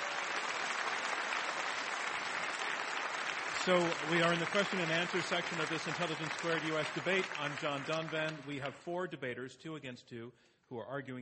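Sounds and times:
audience applause: 0:00.0 - 0:08.4
speech: 0:03.6 - 0:11.2.

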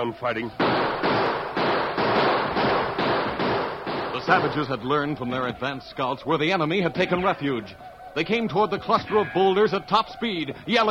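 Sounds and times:
speech: 0:00.0 - 0:01.4, 0:04.3 - 0:10.8
loud sharp gunshots: 0:00.6 - 0:04.9.

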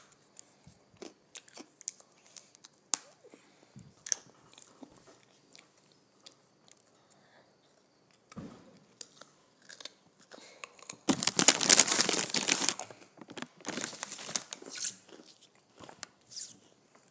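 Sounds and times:
person crunching on potato chips: 0:00.3 - 0:03.2, 0:09.0 - 0:15.6.

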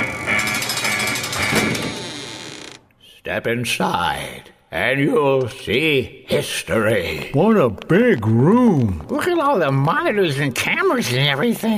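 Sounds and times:
door opening with loud mechanical rattle and high-pitched whine: 0:00.0 - 0:02.8
speech: 0:03.3 - 0:11.7.

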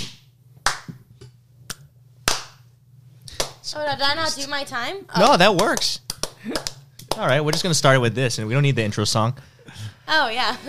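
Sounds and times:
hand claps: 0:00.0 - 0:02.6, 0:03.3 - 0:03.7, 0:05.4 - 0:07.8
speech: 0:03.7 - 0:10.6.

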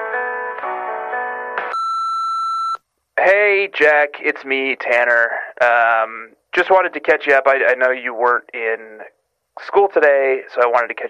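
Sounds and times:
voicemail beep: 0:01.7 - 0:02.8
speech: 0:03.2 - 0:11.0.

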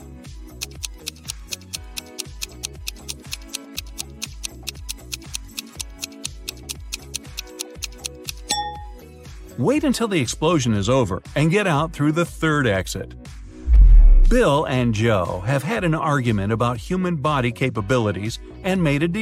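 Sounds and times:
countdown timer ticking: 0:00.5 - 0:09.0
speech: 0:09.6 - 0:13.2, 0:14.3 - 0:19.2.

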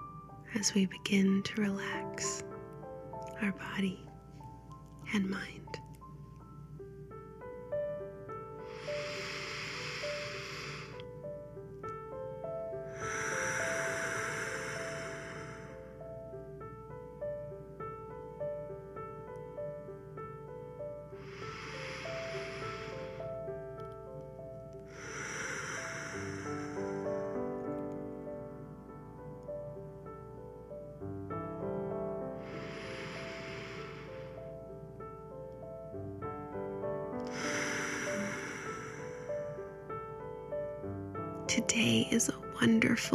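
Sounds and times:
soft sustained music: 0:00.0 - 0:43.1
speech: 0:00.6 - 0:02.5, 0:03.4 - 0:04.1, 0:05.0 - 0:05.8
deep breaths during a guided relaxation: 0:08.4 - 0:11.3, 0:12.8 - 0:16.3, 0:20.8 - 0:24.2, 0:24.8 - 0:28.2, 0:32.2 - 0:34.9, 0:37.2 - 0:39.9.

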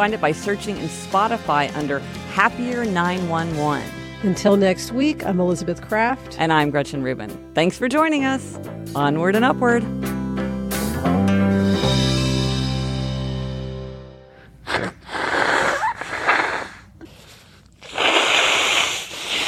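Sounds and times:
speech: 0:00.0 - 0:10.1
held musical chord: 0:06.9 - 0:14.3
person blowing nose: 0:14.4 - 0:19.4.

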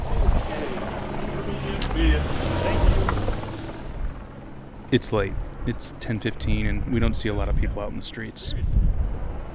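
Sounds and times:
police car passing by: 0:00.0 - 0:04.5
speech: 0:04.9 - 0:09.2.

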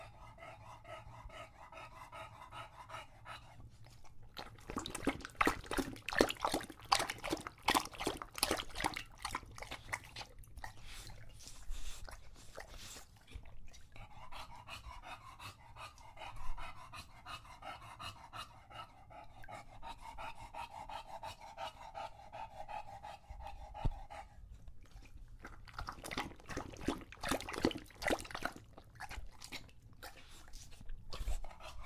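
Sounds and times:
English Bulldog panting heavily: 0:00.0 - 0:31.8.

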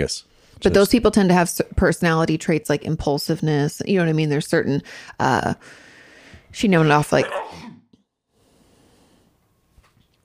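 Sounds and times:
speech: 0:00.0 - 0:05.8, 0:06.5 - 0:07.7
loud sneeze: 0:07.2 - 0:07.8.

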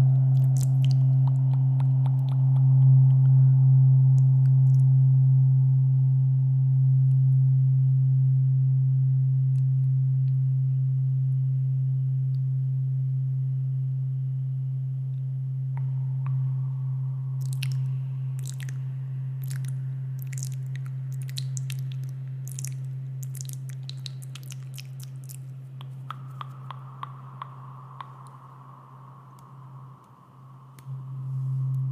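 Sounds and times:
tuning fork humming: 0:00.0 - 0:31.9
mouth clicks and smacks: 0:00.3 - 0:03.4, 0:17.4 - 0:31.0.

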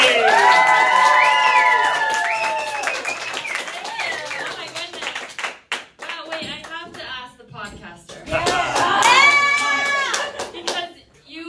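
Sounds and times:
excited voices and whoops: 0:00.0 - 0:04.4, 0:08.3 - 0:10.4
audience applause: 0:00.0 - 0:05.8, 0:08.4 - 0:10.7.

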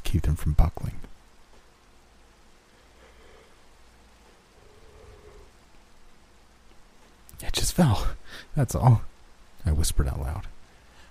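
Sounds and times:
rain falling: 0:00.0 - 0:11.0
speech: 0:00.1 - 0:01.0, 0:07.8 - 0:10.5.

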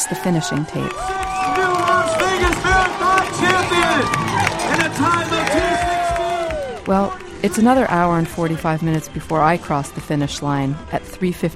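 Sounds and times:
speech: 0:00.0 - 0:01.1, 0:06.9 - 0:11.5
crowd cheering wildly at race finish: 0:00.0 - 0:07.4.

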